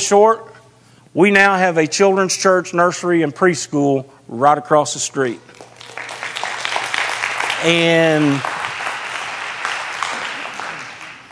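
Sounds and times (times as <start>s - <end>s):
speech: 0.0s - 0.5s, 1.2s - 5.7s, 7.6s - 8.6s
audience clapping: 5.5s - 11.2s.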